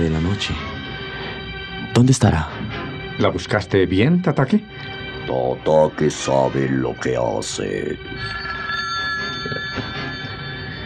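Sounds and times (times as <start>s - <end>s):
speech: 0.0s - 0.7s, 2.0s - 2.6s, 3.2s - 8.5s
telephone bell ringing: 8.2s - 10.8s.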